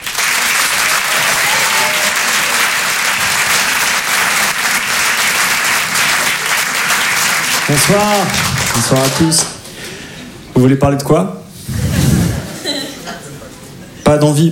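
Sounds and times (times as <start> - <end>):
comedy club audience clapping for a comedian: 0.0 - 9.7
speech: 7.7 - 9.6, 10.6 - 11.4, 14.1 - 14.5
laughter: 11.8 - 14.0.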